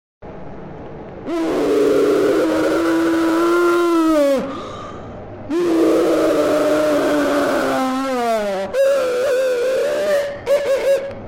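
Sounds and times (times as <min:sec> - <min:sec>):
man screaming: 0:01.3 - 0:04.5, 0:05.5 - 0:10.4.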